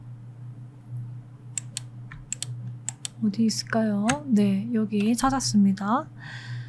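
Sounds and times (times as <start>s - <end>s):
low steady hum: 0.0s - 6.6s
computer mouse clicking with Ctrl key held: 1.6s - 3.2s
speech: 3.2s - 6.5s.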